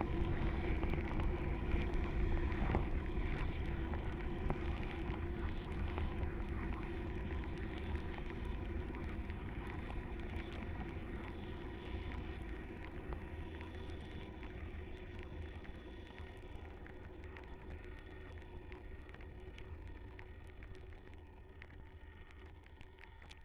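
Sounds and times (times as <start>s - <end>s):
kettle boiling recorded with hydrophones: 0.0s - 23.4s.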